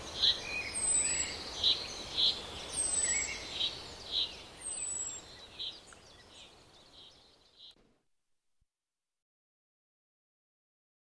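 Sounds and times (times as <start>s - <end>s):
common chaffinch Fringilla coelebs calling: 0.0s - 7.8s.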